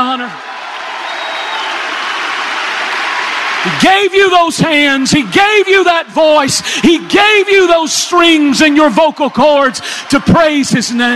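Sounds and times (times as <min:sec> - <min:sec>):
speech: 0:00.0 - 0:00.5, 0:03.6 - 0:11.1
church crowd cheering and applauding during a worship praise break: 0:00.0 - 0:11.1
faint whistle: 0:01.1 - 0:01.8.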